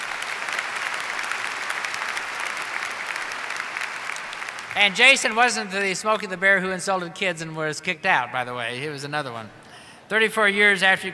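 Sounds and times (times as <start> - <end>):
audience applause: 0.0 - 5.6
speech: 4.8 - 11.1.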